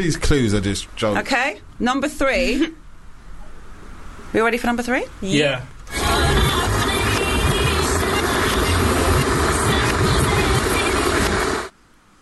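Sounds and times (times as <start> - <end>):
speech: 0.0 - 2.8, 4.3 - 5.7
electric kettle boiling loudly: 5.9 - 11.7.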